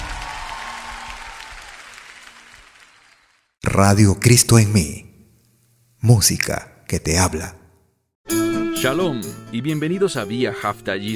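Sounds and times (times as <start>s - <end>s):
applause: 0.0s - 3.6s
speech: 3.7s - 5.0s, 6.0s - 7.6s, 8.3s - 11.1s.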